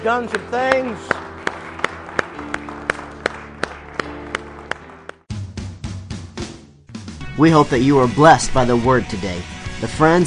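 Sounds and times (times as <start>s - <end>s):
speech: 0.0s - 1.2s, 7.4s - 10.2s
audience clapping hands in praise: 0.0s - 5.4s
music: 0.0s - 10.2s.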